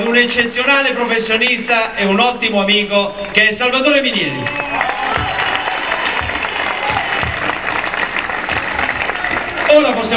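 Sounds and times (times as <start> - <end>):
speech: 0.2 - 5.0, 9.7 - 10.1
crowd applauding: 4.2 - 10.1.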